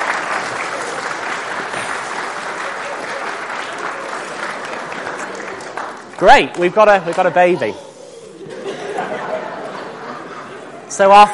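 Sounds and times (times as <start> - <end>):
audience applause: 0.0 - 7.6
speech: 6.2 - 7.8, 11.0 - 11.3
laughter: 7.4 - 11.3.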